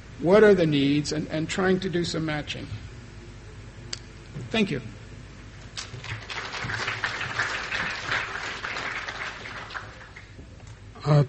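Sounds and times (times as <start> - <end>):
speech: 0.2 - 2.9, 4.5 - 5.0, 11.1 - 11.2
audience applause after presentation: 5.8 - 10.4.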